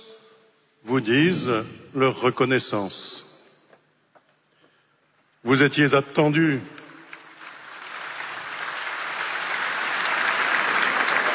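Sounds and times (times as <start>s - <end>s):
speech: 0.9s - 3.3s, 5.4s - 6.8s
large crowd applauding: 6.8s - 11.3s.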